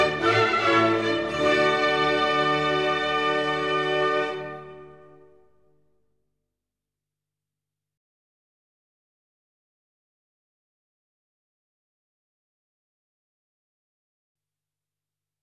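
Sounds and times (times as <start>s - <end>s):
baroque orchestral suite movement in D major: 0.0s - 5.3s.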